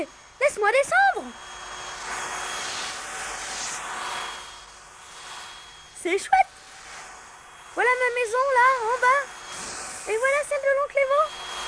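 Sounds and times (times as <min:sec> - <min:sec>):
speech: 0:00.0 - 0:01.5, 0:06.0 - 0:06.6, 0:07.8 - 0:09.4, 0:10.0 - 0:11.4
vacuum cleaner roaring with a hissing whoosh: 0:00.0 - 0:11.6.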